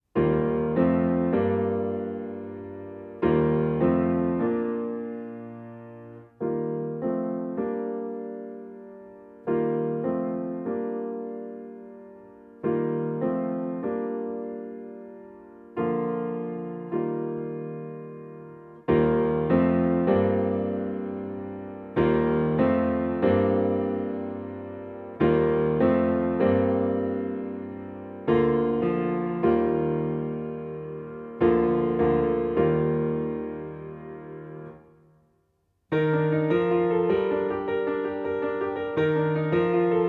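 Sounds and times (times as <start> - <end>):
solo piano: 0.0 - 40.0.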